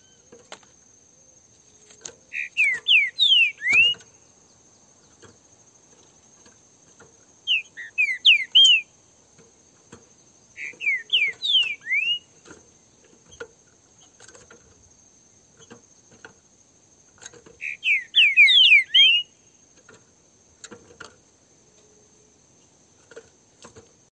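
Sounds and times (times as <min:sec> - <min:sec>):
Green-winged saltator song of whistled slurs: 0:02.3 - 0:04.1, 0:07.5 - 0:08.9, 0:10.6 - 0:12.4, 0:17.6 - 0:19.4.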